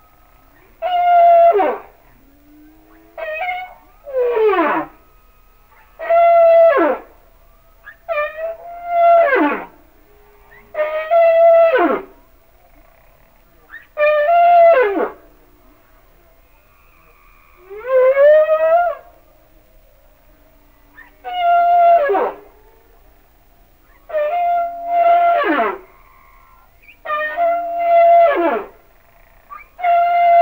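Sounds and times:
humpback whale singing: 0:00.6 - 0:19.2, 0:20.6 - 0:23.2, 0:23.8 - 0:30.3.

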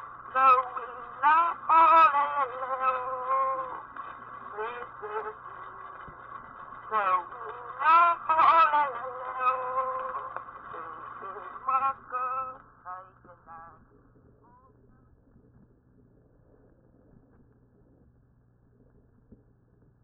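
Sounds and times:
name chant in Hawai'i: 0:00.3 - 0:03.9, 0:06.9 - 0:13.8.

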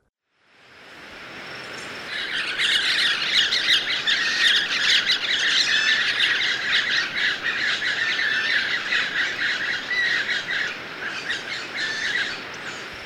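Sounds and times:
white-breasted parakeets screeching in Ecuador: 0:02.1 - 0:12.8.

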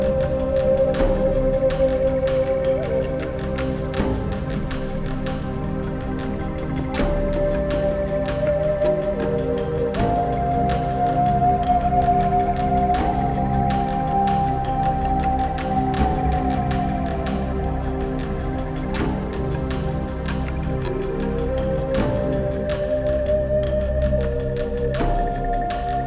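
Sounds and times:
native flute: 0:00.0 - 0:26.0.

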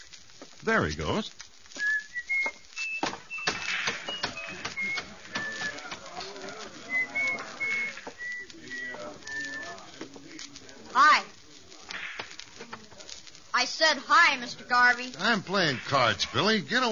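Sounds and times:
speech: 0:00.6 - 0:01.4, 0:13.9 - 0:16.9
man whistling while walking: 0:01.8 - 0:09.8.

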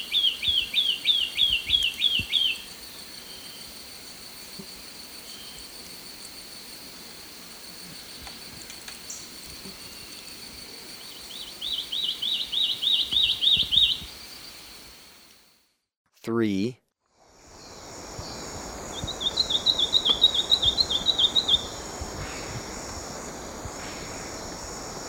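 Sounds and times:
Olivaceous Greenlet calling in Ecuador: 0:00.0 - 0:15.3, 0:19.0 - 0:21.8.

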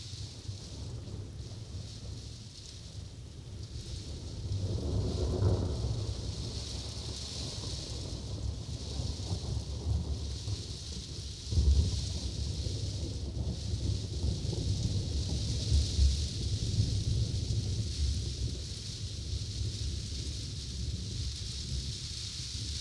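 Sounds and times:
thunderstorm: 0:00.3 - 0:22.7.

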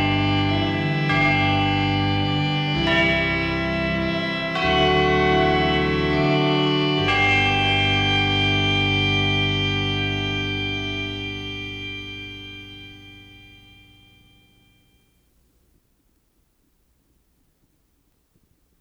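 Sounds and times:
Christmas organ: 0:00.0 - 0:15.4
Christmas chimes: 0:11.5 - 0:15.3.

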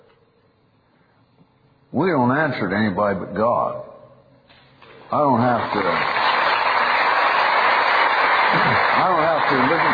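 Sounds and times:
speech: 0:01.9 - 0:03.9, 0:05.1 - 0:06.2, 0:08.5 - 0:09.9
audience applause: 0:05.2 - 0:09.9.

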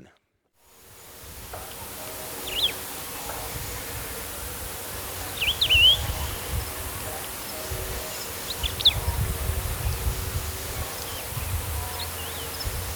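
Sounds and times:
Wedge-tailed grass-finch calls in Ecuador: 0:00.9 - 0:12.9.

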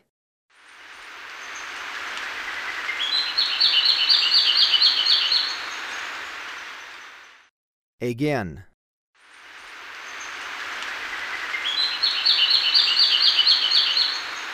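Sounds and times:
background hiss: 0:00.6 - 0:07.4, 0:09.2 - 0:14.5
Sepia-brown Wren song: 0:02.6 - 0:05.7, 0:11.1 - 0:14.5
speech: 0:08.0 - 0:08.7.

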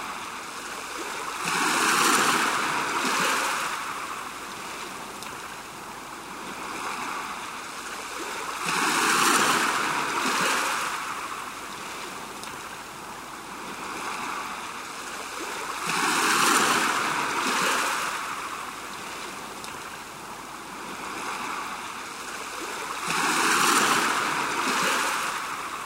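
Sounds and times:
stream flowing: 0:00.0 - 0:25.8
waves: 0:00.0 - 0:25.8.

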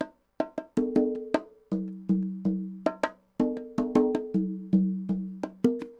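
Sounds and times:
Latin bongos: 0:00.0 - 0:05.9
Latin congas: 0:00.0 - 0:05.9.

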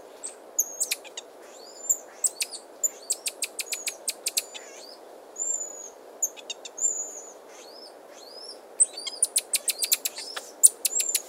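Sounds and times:
buffy-headed marmoset sharp very high chirps: 0:00.2 - 0:11.2.

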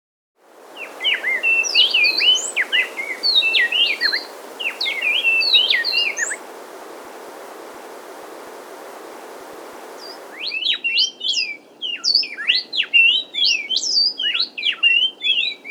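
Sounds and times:
Inca wren song in South America: 0:00.6 - 0:15.6.

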